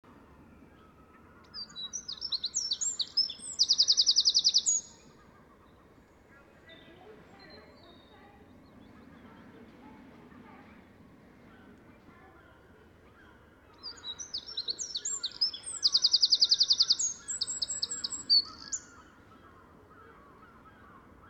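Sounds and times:
Eurasian wren singing: 0:01.4 - 0:05.2, 0:13.8 - 0:19.0.

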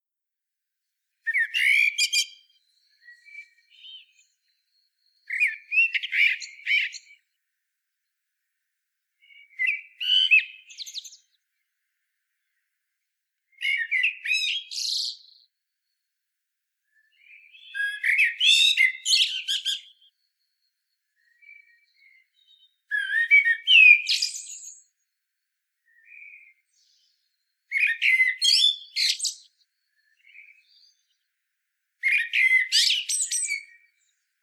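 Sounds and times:
common blackbird singing: 0:01.2 - 0:07.2, 0:09.2 - 0:11.4, 0:13.6 - 0:15.5, 0:17.0 - 0:25.0, 0:25.8 - 0:31.3, 0:32.0 - 0:34.2.

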